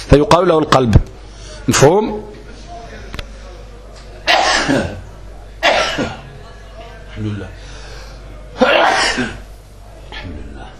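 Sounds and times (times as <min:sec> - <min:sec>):
speech: 0:00.1 - 0:02.4, 0:04.7 - 0:05.0, 0:07.2 - 0:07.7, 0:08.6 - 0:09.4
loud explosive sneeze: 0:04.2 - 0:05.0, 0:05.6 - 0:06.2, 0:08.6 - 0:09.4.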